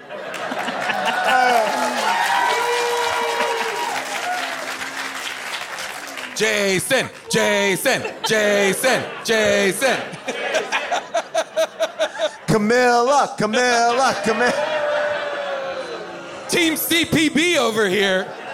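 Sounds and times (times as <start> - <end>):
audience applause and cheering: 0.0 - 12.3, 13.7 - 16.8
laughter: 0.0 - 18.5
speech: 6.4 - 10.2, 12.5 - 14.7, 16.6 - 18.4.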